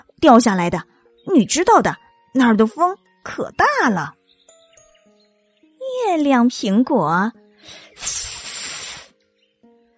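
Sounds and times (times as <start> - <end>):
speech: 0.2 - 4.2, 6.0 - 8.2
snake hissing: 7.6 - 9.2.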